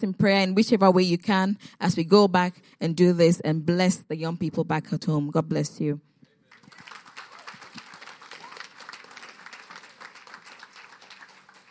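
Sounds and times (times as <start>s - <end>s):
speech: 0.0s - 6.1s
people clapping: 6.4s - 11.6s.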